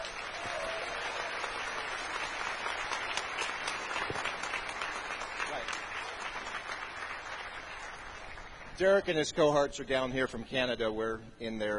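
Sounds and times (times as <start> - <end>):
audience applause: 0.0 - 8.7
speech: 8.8 - 11.7.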